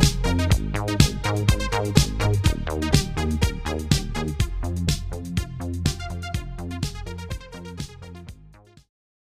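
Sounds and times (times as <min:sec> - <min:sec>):
Crumar Bit 99 synthesizer: 0:00.0 - 0:08.9.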